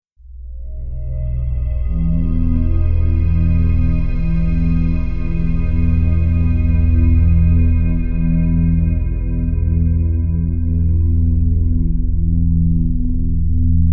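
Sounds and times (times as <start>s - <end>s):
drone: 0.4s - 13.8s.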